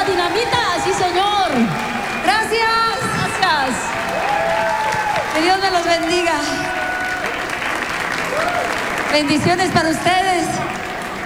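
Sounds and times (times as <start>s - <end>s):
audience applause: 0.0s - 11.2s
speech: 0.3s - 1.7s, 5.4s - 6.8s, 9.1s - 10.5s.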